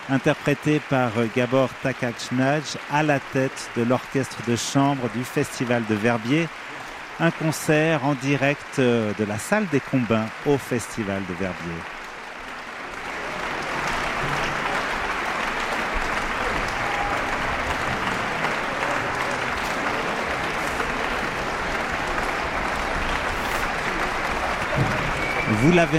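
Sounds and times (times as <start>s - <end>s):
large concert audience applauding: 0.0s - 25.9s
speech: 0.1s - 12.0s, 25.6s - 25.9s
audience whistles: 24.8s - 25.9s.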